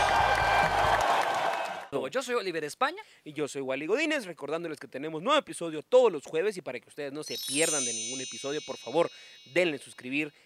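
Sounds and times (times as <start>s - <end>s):
applause: 0.0s - 2.0s
speech: 1.9s - 10.4s.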